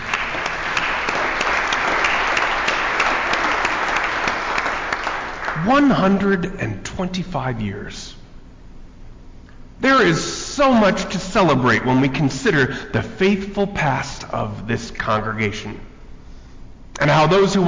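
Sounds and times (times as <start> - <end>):
audience applauding: 0.0 - 6.3
speech: 5.6 - 8.1, 10.0 - 15.9, 17.0 - 17.6.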